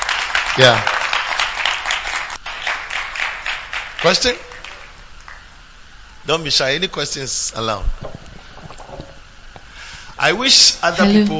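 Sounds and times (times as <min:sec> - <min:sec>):
crowd clapping: 0:00.0 - 0:05.5
speech: 0:00.6 - 0:01.0, 0:04.0 - 0:04.4, 0:06.3 - 0:08.2, 0:10.2 - 0:11.3.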